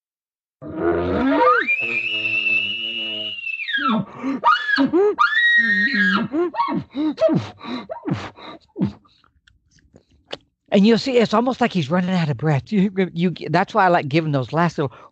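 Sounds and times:
speech: 0.6s - 2.7s, 4.2s - 9.0s, 10.7s - 15.0s
human voice imitating a bull elk bugle: 1.1s - 4.0s.

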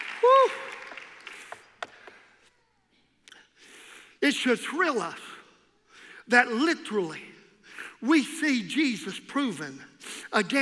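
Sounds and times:
crowd clapping hands: 0.0s - 2.4s
speech: 4.2s - 5.3s, 6.3s - 7.3s, 8.0s - 10.6s.

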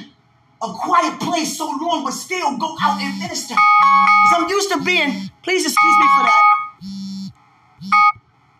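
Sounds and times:
speech: 0.6s - 7.0s
alarm going off: 2.8s - 8.2s.

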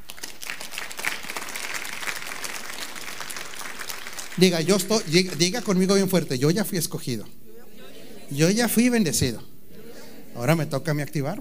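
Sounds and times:
audience applause: 0.0s - 6.1s
speech: 4.4s - 7.4s, 8.3s - 9.5s, 10.4s - 11.3s.

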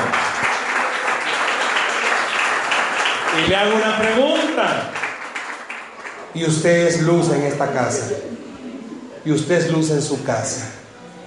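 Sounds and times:
audience applause: 0.0s - 8.0s
speech: 3.4s - 5.0s, 6.3s - 8.5s, 9.2s - 10.8s.

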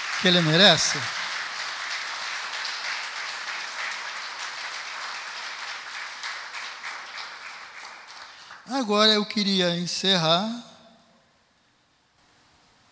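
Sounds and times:
audience applauding: 0.0s - 8.9s
speech: 0.2s - 1.2s, 8.7s - 10.7s.

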